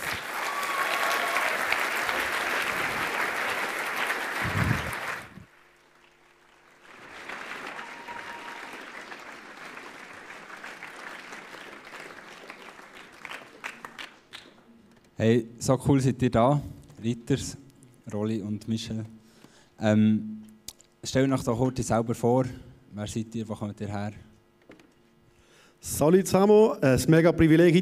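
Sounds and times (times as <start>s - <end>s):
audience applause: 0.0s - 14.5s
speech: 15.2s - 19.2s, 19.8s - 20.3s, 21.1s - 24.3s, 25.8s - 27.7s.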